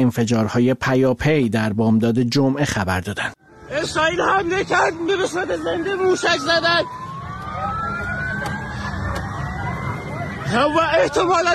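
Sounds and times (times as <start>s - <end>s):
speech: 0.0s - 7.0s, 10.5s - 11.5s
air raid siren: 3.4s - 11.5s.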